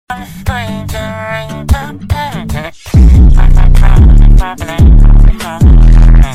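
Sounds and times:
boosted bass: 1.7s - 6.3s.

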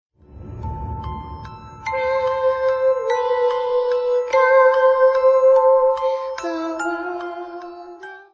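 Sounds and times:
music box: 0.5s - 8.3s
person singing: 1.8s - 8.3s.

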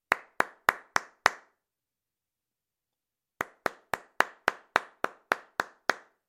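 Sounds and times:
man clapping after a concert: 0.0s - 1.6s, 3.4s - 6.2s.

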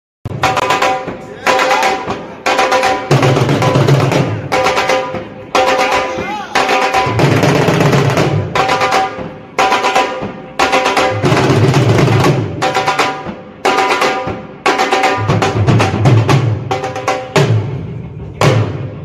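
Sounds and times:
dhol drumming: 0.3s - 19.0s.

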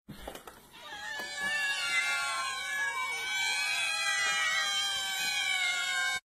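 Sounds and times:
many cats: 0.1s - 6.2s.

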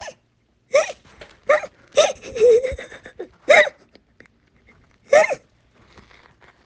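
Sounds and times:
person laughing: 2.0s - 3.6s.

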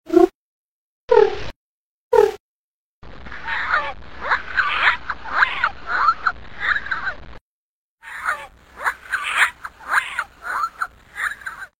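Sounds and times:
headcrab creature sounds: 3.3s - 7.2s, 8.0s - 11.7s.

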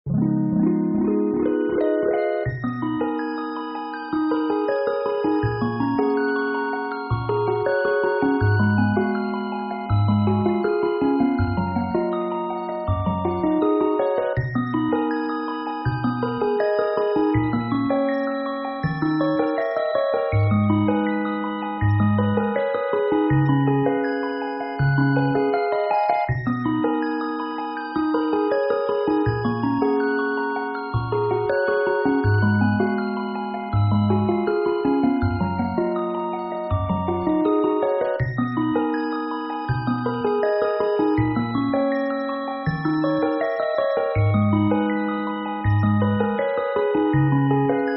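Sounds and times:
fairy background music: 0.1s - 47.9s.

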